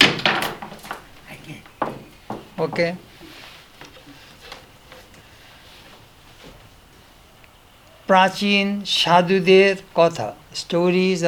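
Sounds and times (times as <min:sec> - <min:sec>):
chair shifted, wooden knocks and scrapes: 0:00.0 - 0:06.7
faint voices murmuring: 0:01.2 - 0:05.1
speech: 0:02.6 - 0:03.1, 0:08.1 - 0:11.2.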